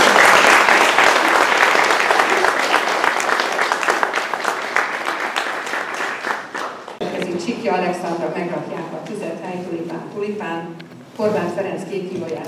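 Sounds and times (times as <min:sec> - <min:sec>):
crowd applause: 0:00.0 - 0:07.1
speech: 0:07.7 - 0:12.4.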